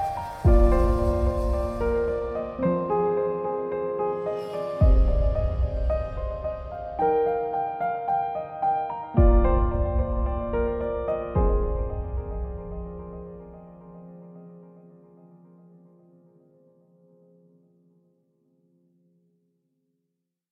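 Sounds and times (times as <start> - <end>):
background music: 0.0 - 15.2.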